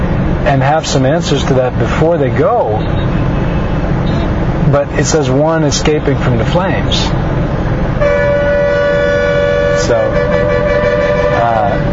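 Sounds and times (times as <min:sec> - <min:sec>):
street traffic engines rumbling: 0:00.0 - 0:11.9
speech: 0:00.4 - 0:03.2, 0:04.7 - 0:07.5, 0:09.8 - 0:10.6
car horn: 0:02.7 - 0:04.4, 0:08.0 - 0:11.9
wavering horn: 0:08.0 - 0:11.9.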